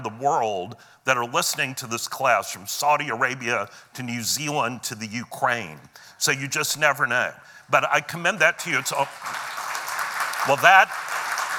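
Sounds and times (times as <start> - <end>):
speech: 0.1 - 9.5, 10.4 - 11.1
audience applause: 8.9 - 11.5.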